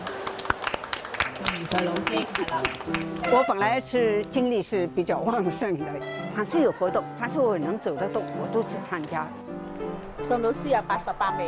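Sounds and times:
audience applause: 0:00.0 - 0:03.6
speech: 0:01.6 - 0:11.4.

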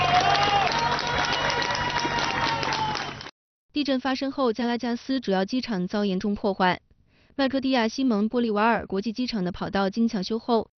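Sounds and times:
scattered shouts: 0:00.0 - 0:03.2
rescuers and residents cheering: 0:00.0 - 0:03.3
speech: 0:03.8 - 0:10.7.

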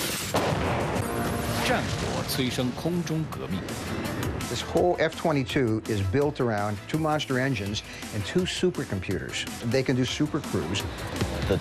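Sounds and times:
Apache attack helicopter 30 mm automatic cannon fire: 0:00.3 - 0:02.9
speech: 0:01.7 - 0:11.5.

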